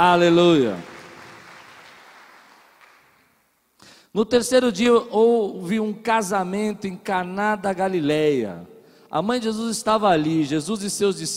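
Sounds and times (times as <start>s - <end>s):
speech: 0.0s - 0.9s, 4.2s - 11.3s
crowd applauding: 0.4s - 3.4s.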